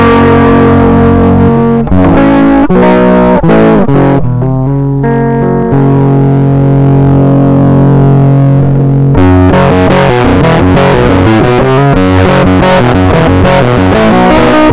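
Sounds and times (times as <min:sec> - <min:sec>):
guitar with transistor variable bias heavy distortion: 0:00.0 - 0:14.7.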